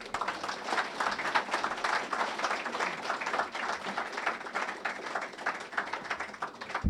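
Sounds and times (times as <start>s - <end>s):
room full of people applauding: 0.0s - 6.8s.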